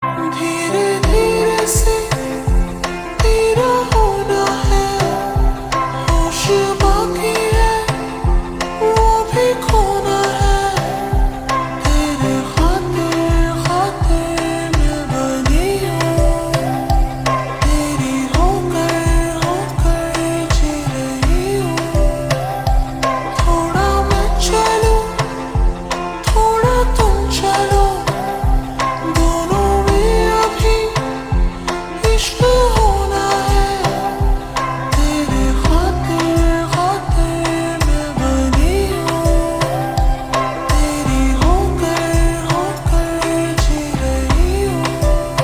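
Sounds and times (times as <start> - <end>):
ringtone slowed with reverb: 0.3 - 45.4.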